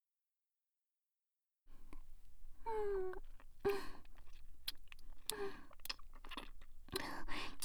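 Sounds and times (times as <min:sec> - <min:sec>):
ear licking foreplay: 0:03.0 - 0:07.6.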